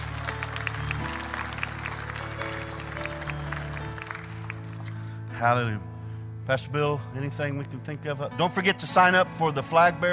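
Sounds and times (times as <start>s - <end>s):
audience clapping hands: 0.0s - 5.2s
speech: 5.4s - 10.1s.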